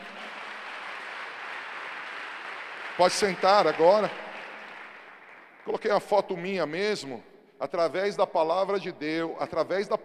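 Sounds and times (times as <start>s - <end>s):
audience applauding: 0.0s - 6.0s
speech: 3.0s - 4.2s, 5.6s - 10.0s.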